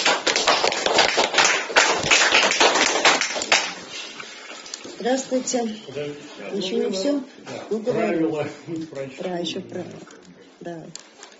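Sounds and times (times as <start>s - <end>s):
crowd welcoming applause: 0.0s - 4.1s
speech: 5.0s - 11.1s.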